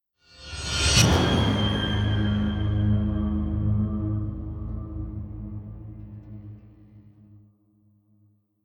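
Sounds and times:
dramatic music stinger: 0.9s - 7.4s.

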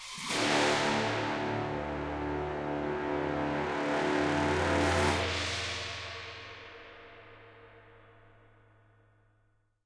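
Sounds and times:
escape music stinger: 0.2s - 6.6s.

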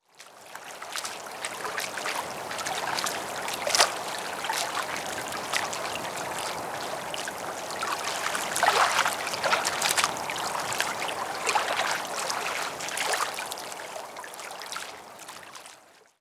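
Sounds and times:
quiet water at docks: 0.0s - 16.1s.

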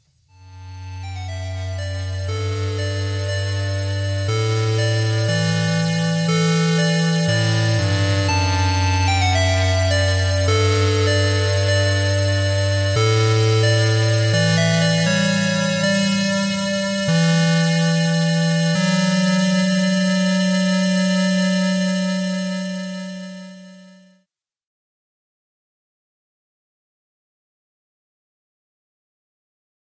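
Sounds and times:
trance mix: 0.4s - 24.0s.

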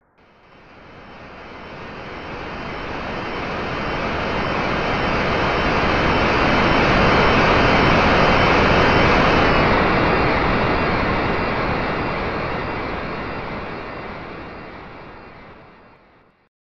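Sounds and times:
airplane: 0.2s - 16.2s.

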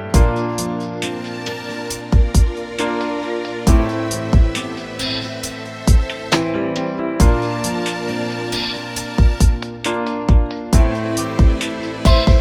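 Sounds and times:
karaoke backing track: 0.2s - 12.4s.

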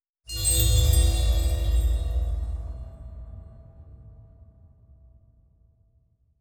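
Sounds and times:
bell: 0.3s - 4.1s.

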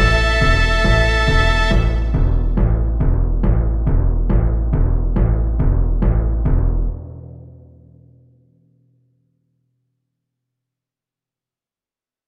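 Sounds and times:
quest battle music: 0.0s - 7.0s.

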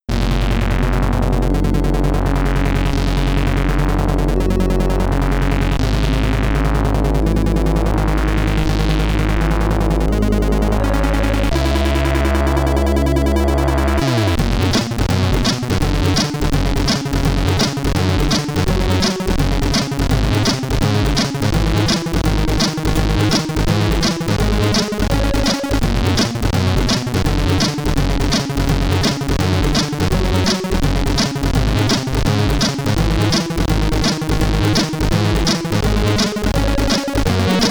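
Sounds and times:
SID stereo chiptune boss music: 0.1s - 37.7s.

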